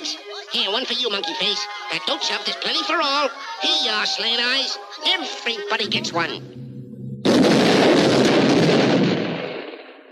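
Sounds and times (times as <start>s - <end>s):
speech: 0.5s - 6.6s
low humming tone: 5.9s - 7.4s
cartoon explosion: 7.2s - 10.1s.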